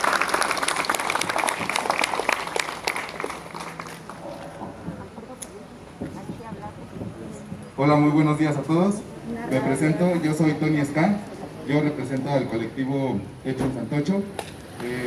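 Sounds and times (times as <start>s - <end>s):
group applause: 0.0s - 4.7s
soft murmur of voices: 0.6s - 15.0s
speech: 7.8s - 15.0s.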